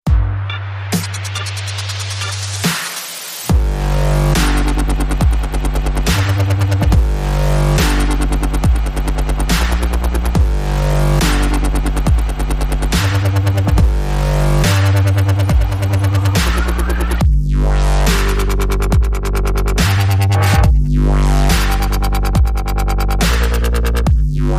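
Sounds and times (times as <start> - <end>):
dub rhythm: 0.0 - 24.5.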